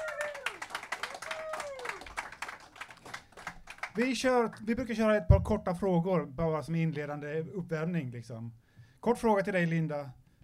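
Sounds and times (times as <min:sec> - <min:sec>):
audience applause: 0:00.0 - 0:04.0
speech: 0:04.0 - 0:10.2.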